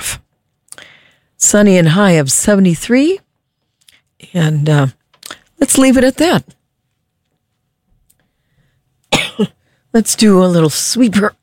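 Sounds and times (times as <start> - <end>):
speech: 1.5 - 3.2, 4.2 - 5.0, 5.6 - 6.6, 9.4 - 11.4
throat-clearing cough from someone with a frog in the throat: 9.1 - 9.6.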